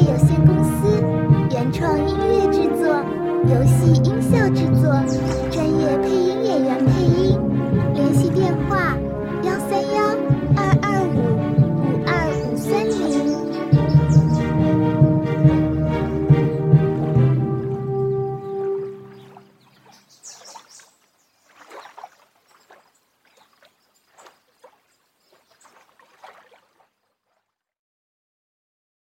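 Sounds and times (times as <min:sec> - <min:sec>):
light playful casual chibi-style music: 0:00.0 - 0:20.0.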